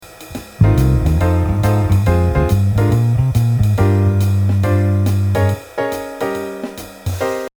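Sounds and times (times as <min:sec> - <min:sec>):
bass E-flat note: 0:00.6 - 0:05.6.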